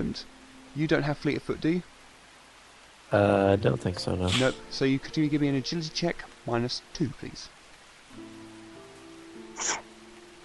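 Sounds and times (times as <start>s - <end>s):
speech: 0.0s - 1.9s, 3.1s - 7.6s, 9.6s - 9.8s
low steady hum: 0.0s - 9.3s
sneeze: 9.6s - 9.9s.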